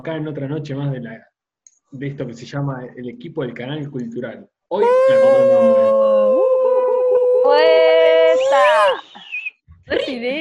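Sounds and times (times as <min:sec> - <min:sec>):
speech: 0:00.0 - 0:01.3, 0:01.9 - 0:06.4, 0:09.9 - 0:10.3
voice imitating a siren: 0:04.8 - 0:09.0.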